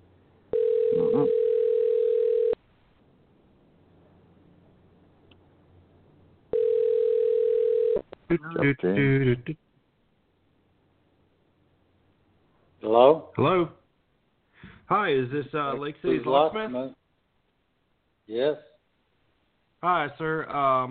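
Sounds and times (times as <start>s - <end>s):
telephone ringing tone on a call: 0.5s - 2.6s, 6.5s - 8.1s
speech: 8.4s - 9.6s, 13.1s - 13.8s, 14.9s - 17.0s, 18.3s - 18.7s, 19.8s - 20.8s.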